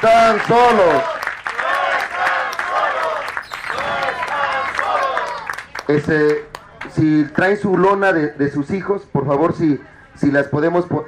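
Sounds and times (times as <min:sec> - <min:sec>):
speech: 0:00.0 - 0:01.2, 0:05.9 - 0:11.0
applause: 0:00.0 - 0:07.0.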